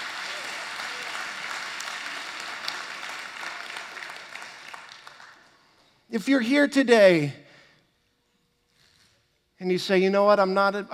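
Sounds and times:
audience hand clapping: 0:00.0 - 0:05.9
speech: 0:06.1 - 0:07.4, 0:09.6 - 0:10.9.

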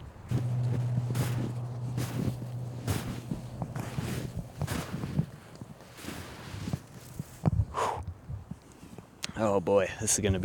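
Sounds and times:
wind buffeting the microphone: 0:00.0 - 0:09.2
footsteps trudging through knee-deep snow: 0:00.3 - 0:07.4
speech: 0:09.4 - 0:10.4.

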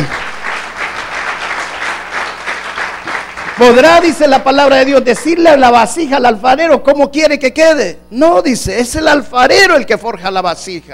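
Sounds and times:
audience applauding: 0:00.0 - 0:05.4
speech: 0:03.6 - 0:10.9.

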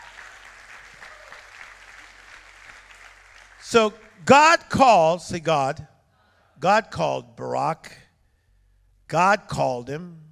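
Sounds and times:
crowd clapping: 0:00.0 - 0:04.4
speech: 0:03.7 - 0:05.9, 0:06.6 - 0:08.0, 0:09.1 - 0:10.2.

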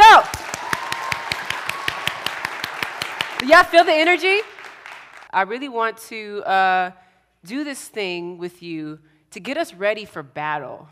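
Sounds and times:
audience hand clapping: 0:00.0 - 0:05.3
speech: 0:03.5 - 0:04.5, 0:05.3 - 0:10.9.

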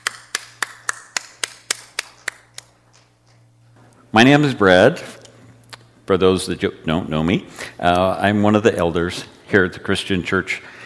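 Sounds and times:
congregation hands clapping to welcome the pastor: 0:00.0 - 0:03.4
speech: 0:04.2 - 0:05.2, 0:06.1 - 0:10.8.

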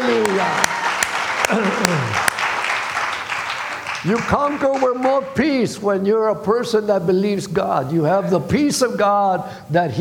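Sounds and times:
crowd clapping and shouting: 0:00.0 - 0:05.4
speech: 0:04.0 - 0:09.9.

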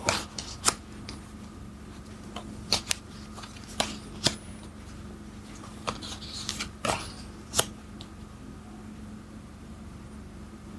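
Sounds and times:
playing cards being handled and fanned out: 0:00.0 - 0:01.2, 0:02.3 - 0:04.4, 0:05.6 - 0:08.1
low steady hum: 0:00.0 - 0:10.7.

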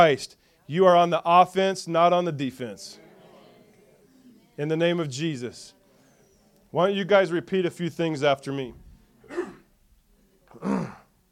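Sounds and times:
speech: 0:00.0 - 0:03.0, 0:04.6 - 0:05.8, 0:06.7 - 0:08.8, 0:10.5 - 0:11.0
cough: 0:09.2 - 0:09.7, 0:10.5 - 0:11.1.

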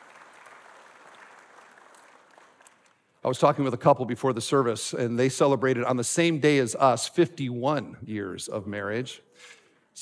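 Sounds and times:
audience applause: 0:00.0 - 0:02.9
speech: 0:03.2 - 0:10.0.

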